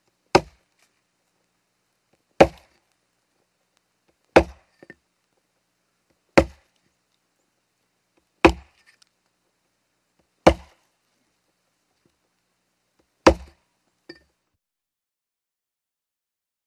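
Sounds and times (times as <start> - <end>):
axe single hit: 2.4 - 2.7, 4.4 - 4.6, 6.4 - 6.6, 8.5 - 8.7, 10.5 - 10.8, 13.3 - 13.6.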